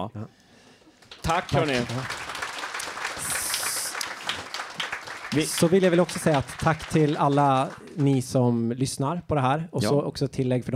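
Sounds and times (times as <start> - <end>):
speech: 0.0 - 0.4, 1.2 - 2.2, 5.3 - 10.7
audience applause: 1.0 - 8.6.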